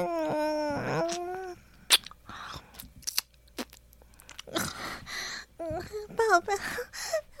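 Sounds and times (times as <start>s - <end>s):
speech: 0.0s - 1.3s, 6.4s - 7.0s
soft mouth sounds: 0.7s - 4.7s
chewing crunchy popcorn: 1.9s - 4.6s.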